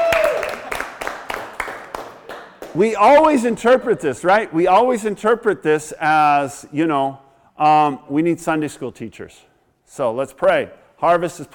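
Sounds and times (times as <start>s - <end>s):
audience hand clapping in a steady rhythm: 0.0s - 3.1s
speech: 2.8s - 11.5s.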